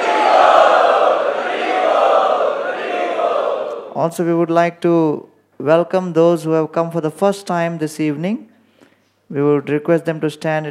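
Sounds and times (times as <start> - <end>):
audience loudly chanting to welcome guests at an evening preaching gathering: 0.0 - 4.0
speech: 4.0 - 8.5, 9.3 - 10.6.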